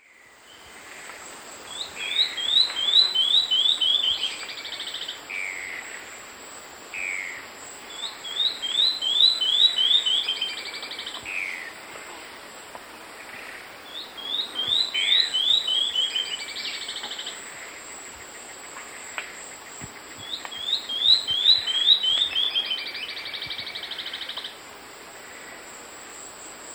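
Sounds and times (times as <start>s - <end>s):
Tawny-throated Leaftosser calling in South American eastern lowlands: 1.7s - 5.9s, 7.0s - 11.7s, 13.9s - 17.9s, 19.9s - 24.6s.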